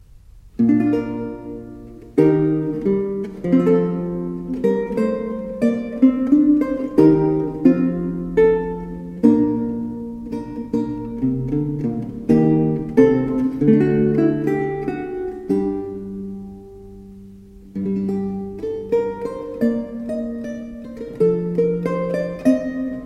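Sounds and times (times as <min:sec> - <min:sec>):
lute piece: 0:00.0 - 0:23.0.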